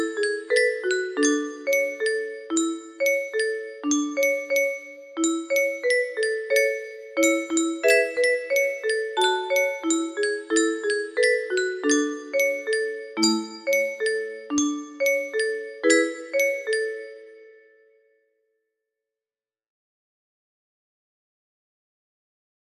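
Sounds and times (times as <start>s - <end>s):
music box melody: 0.0s - 17.7s.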